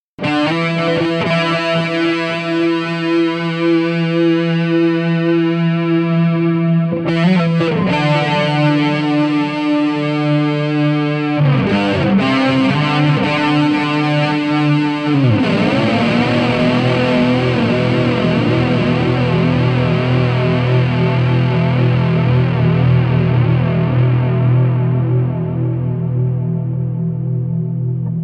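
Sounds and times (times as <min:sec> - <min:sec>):
boogie guitar intro: 0:00.2 - 0:28.2.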